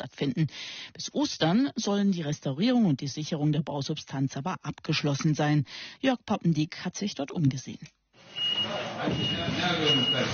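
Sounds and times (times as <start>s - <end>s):
speech: 0.2s - 8.4s, 9.0s - 10.3s
forklift reversing beep: 8.2s - 10.3s
indistinct voices: 8.4s - 10.3s.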